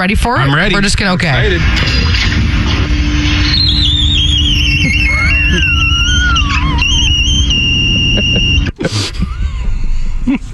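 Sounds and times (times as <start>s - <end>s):
speech: 0.0s - 2.3s
glass door squeaking as it drags along the floor: 0.0s - 10.5s
steady low rumble: 0.0s - 10.5s
laughter: 0.2s - 10.5s.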